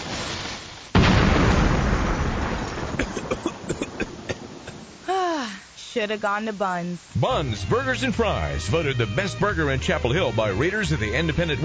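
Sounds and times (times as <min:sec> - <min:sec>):
crackles and pops: 0:00.0 - 0:09.4
backyard grill explosion boom and rumbling roar: 0:01.0 - 0:04.7
speech: 0:06.0 - 0:11.6.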